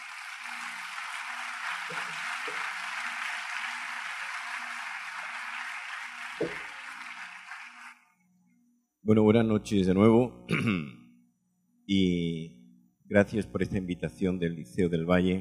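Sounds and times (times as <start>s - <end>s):
audience applause: 0.0s - 8.0s
speech: 9.1s - 11.0s, 11.9s - 15.3s.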